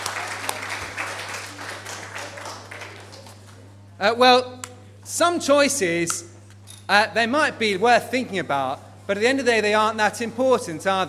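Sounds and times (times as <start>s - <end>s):
audience applause: 0.0s - 3.5s
speech: 4.0s - 6.3s, 6.9s - 11.0s.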